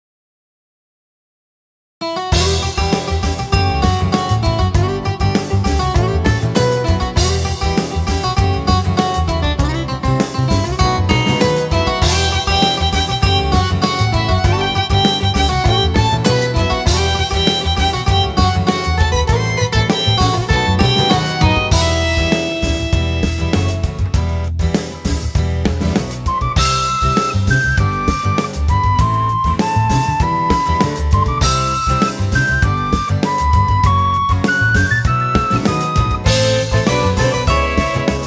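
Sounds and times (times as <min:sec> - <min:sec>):
background music: 0:02.3 - 0:38.2.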